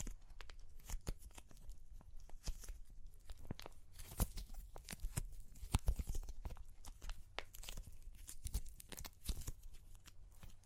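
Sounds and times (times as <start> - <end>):
crunchy clay cracking: 0.0 - 10.6.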